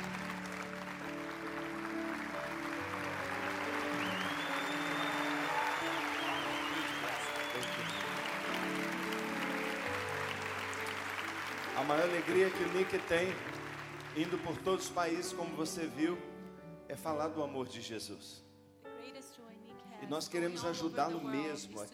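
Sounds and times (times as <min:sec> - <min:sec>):
church congregation applauding during a service: 0:00.0 - 0:15.8
speech: 0:11.8 - 0:13.6, 0:14.2 - 0:16.3, 0:16.9 - 0:18.4, 0:20.1 - 0:21.9.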